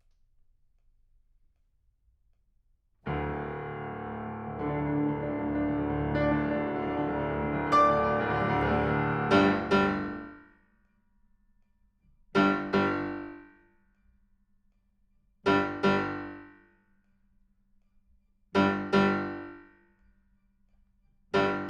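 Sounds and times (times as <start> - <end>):
piano: 3.1 - 10.5, 12.4 - 13.4, 15.5 - 16.5, 18.6 - 19.6, 21.4 - 21.6.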